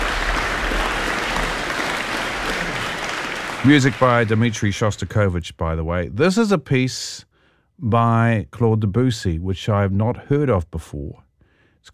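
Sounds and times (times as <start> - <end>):
audience applause after a concert: 0.0 - 4.8
speech: 3.6 - 11.2.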